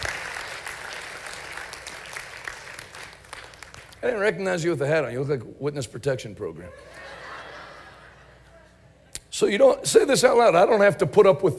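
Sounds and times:
audience applause: 0.0s - 4.0s
speech: 4.0s - 7.0s, 9.4s - 11.5s
laughter: 6.7s - 8.8s.

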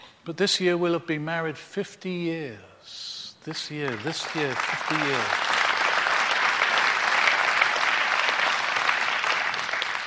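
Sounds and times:
speech: 0.2s - 5.6s
crowd applauding: 3.8s - 10.0s.

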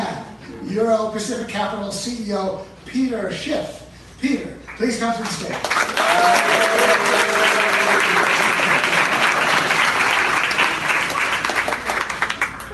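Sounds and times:
speech: 0.6s - 8.8s
raucous crowd applause: 5.6s - 12.7s.

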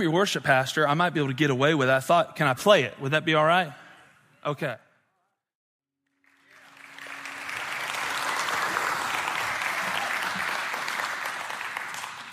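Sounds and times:
speech: 0.0s - 3.8s, 4.4s - 4.8s
audience clapping: 6.1s - 12.3s.

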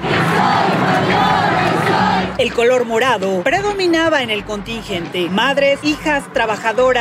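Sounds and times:
protest crowd chanting in unison: 0.0s - 2.4s
speech: 2.4s - 7.0s.

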